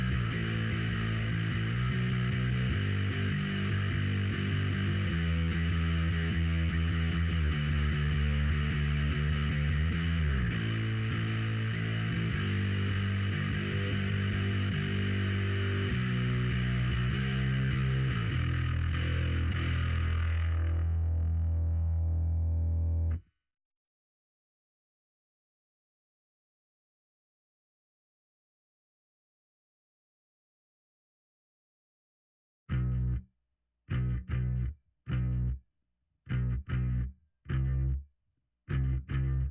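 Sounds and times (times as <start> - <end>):
bass: 0.0 - 23.3, 32.7 - 33.3, 33.9 - 35.6, 36.3 - 38.0, 38.7 - 39.5.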